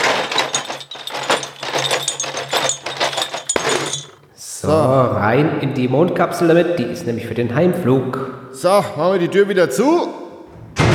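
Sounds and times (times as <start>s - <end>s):
crate of beer bottles dragged, clinking: 0.0s - 4.3s
speech: 4.6s - 10.2s.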